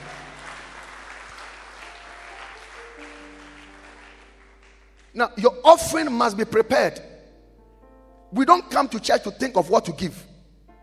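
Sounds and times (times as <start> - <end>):
audience clapping hands: 0.0 - 5.2
speech: 5.2 - 7.1, 8.3 - 10.3.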